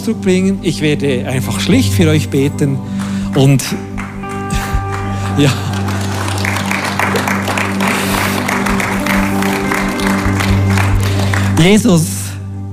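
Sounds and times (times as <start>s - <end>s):
speech: 0.0s - 3.9s, 5.4s - 5.7s, 11.6s - 12.2s
sustained low instrumental tones: 0.0s - 12.7s
audience clapping: 2.9s - 12.0s
laughter: 4.2s - 10.9s.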